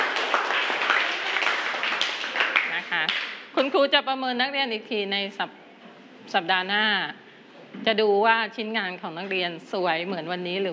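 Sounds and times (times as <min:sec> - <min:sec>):
students clapping for themselves in a hand-sewing class: 0:00.0 - 0:03.5
speech: 0:02.9 - 0:05.6, 0:06.3 - 0:10.7.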